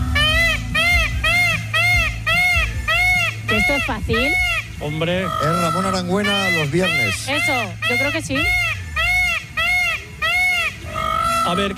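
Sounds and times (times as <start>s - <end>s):
peacock giving loud nasal wailing calls: 0.0s - 11.7s
speech: 3.8s - 8.7s, 11.5s - 11.7s.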